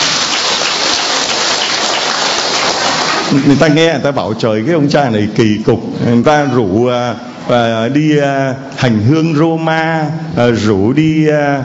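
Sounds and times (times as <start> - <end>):
round of applause: 0.0 - 3.6
speech: 3.3 - 11.6.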